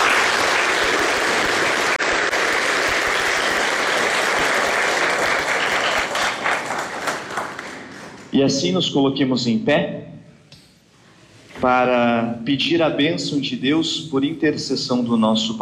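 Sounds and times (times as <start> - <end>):
audience applause: 0.0 - 8.3
speech: 8.4 - 10.1, 11.6 - 15.5.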